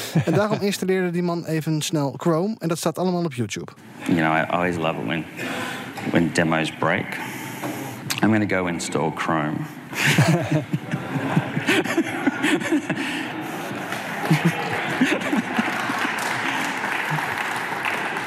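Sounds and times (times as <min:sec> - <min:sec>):
laughter: 0:00.0 - 0:01.0, 0:09.9 - 0:18.2
speech: 0:00.1 - 0:07.4, 0:08.2 - 0:11.4
audience applause: 0:11.6 - 0:18.2.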